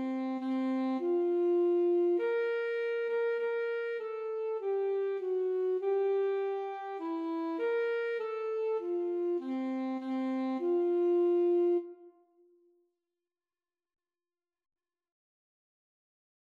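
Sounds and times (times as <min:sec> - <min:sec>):
flute: 0:00.0 - 0:12.4
saxophone: 0:00.0 - 0:12.4.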